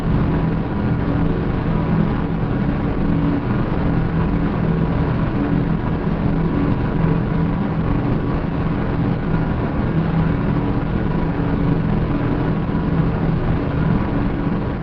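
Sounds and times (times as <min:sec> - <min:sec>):
planetary exterior drone: 0:00.0 - 0:14.8.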